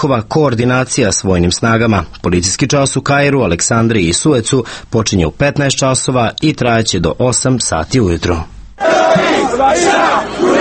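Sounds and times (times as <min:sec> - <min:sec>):
speech: 0:00.0 - 0:10.5
protesters chanting in the street: 0:08.8 - 0:10.5.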